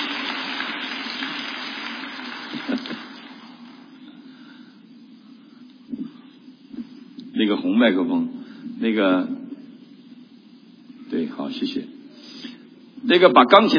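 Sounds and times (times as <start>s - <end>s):
audience applause: 0.0s - 4.0s
speech: 7.4s - 9.4s, 11.5s - 11.9s, 13.1s - 13.7s.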